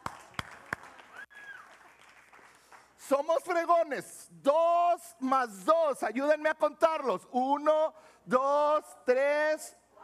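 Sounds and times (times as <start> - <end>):
applause: 0.0 - 3.1
speech: 3.1 - 9.8.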